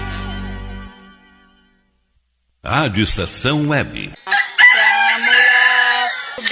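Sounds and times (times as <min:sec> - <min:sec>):
speech: 0:02.7 - 0:04.3
rooster crowing: 0:04.2 - 0:06.4.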